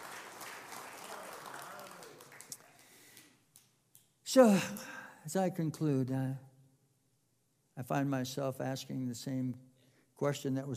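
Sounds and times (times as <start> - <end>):
audience clapping: 0.0 - 3.7
speech: 4.4 - 6.5, 7.8 - 10.7.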